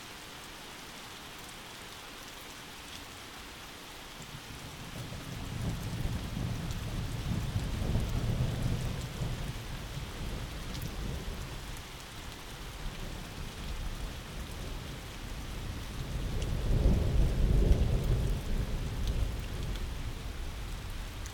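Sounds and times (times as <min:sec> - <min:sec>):
thunderstorm: 0:04.9 - 0:11.7, 0:13.0 - 0:21.2.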